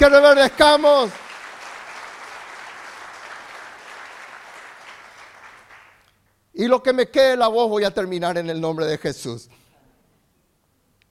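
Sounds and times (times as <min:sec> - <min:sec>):
speech: 0:00.0 - 0:01.3, 0:06.6 - 0:09.6
audience applauding: 0:00.0 - 0:06.1.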